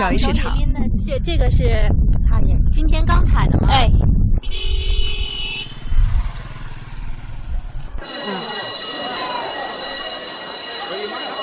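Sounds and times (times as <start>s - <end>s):
speech: 0.0s - 4.8s, 8.0s - 8.6s
long bell-like signal like a school bell starting tea market trading: 8.0s - 11.4s.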